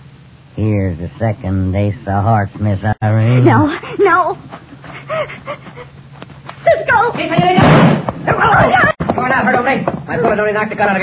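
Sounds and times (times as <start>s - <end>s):
speech: 0.6s - 5.9s, 6.9s - 11.0s
gunshot: 7.6s - 8.2s.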